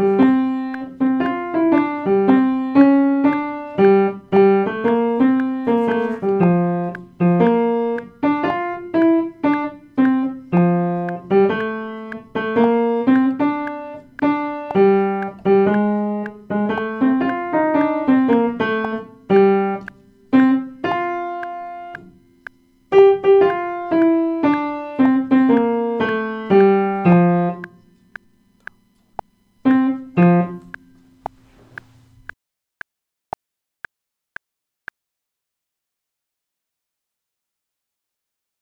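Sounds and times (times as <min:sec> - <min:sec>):
alto voice practicing: 0:00.0 - 0:22.2, 0:22.9 - 0:28.0
piano practicing: 0:00.0 - 0:28.2, 0:29.6 - 0:32.2.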